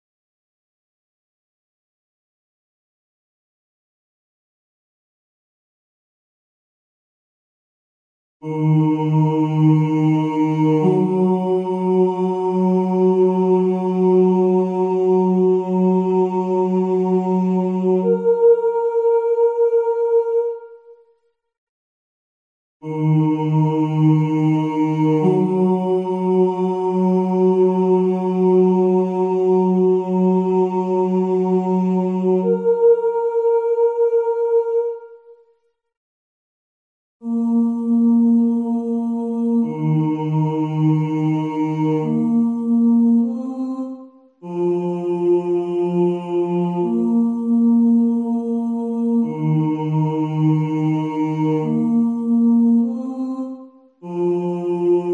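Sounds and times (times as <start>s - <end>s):
soprano singing: 8.4s - 20.9s, 22.8s - 35.2s, 37.2s - 55.1s.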